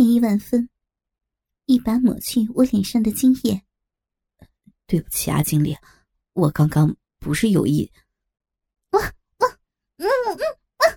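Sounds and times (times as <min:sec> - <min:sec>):
speech: 0:00.0 - 0:00.8, 0:01.7 - 0:03.7, 0:04.9 - 0:08.0, 0:08.9 - 0:09.2
human voice imitating a dog barking: 0:09.0 - 0:10.9.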